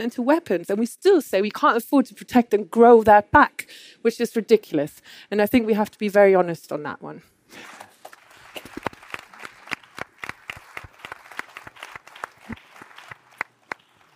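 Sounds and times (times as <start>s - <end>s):
speech: 0.0s - 7.8s
audience applause from a modest group: 7.6s - 14.1s.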